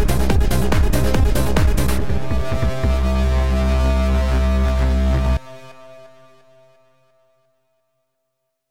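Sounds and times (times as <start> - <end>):
hard trance music: 0.0 - 6.4.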